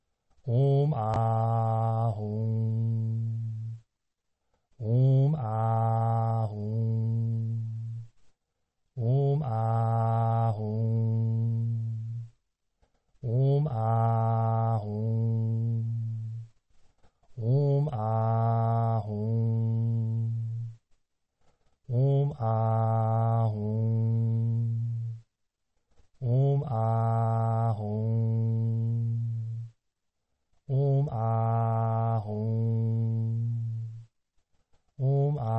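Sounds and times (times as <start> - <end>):
person chanting a mantra: 0.4 - 3.9, 4.8 - 8.2, 9.0 - 12.4, 13.2 - 16.6, 17.3 - 20.8, 21.8 - 25.3, 26.2 - 29.8, 30.7 - 34.1, 35.0 - 35.5.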